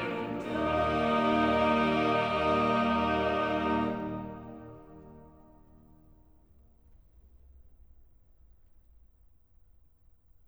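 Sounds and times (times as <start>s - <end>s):
choral cantata: 0.0s - 5.8s.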